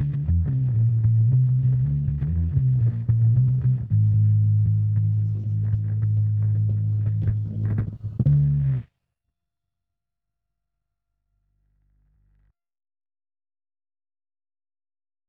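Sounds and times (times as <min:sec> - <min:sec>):
bass: 0:00.0 - 0:08.9.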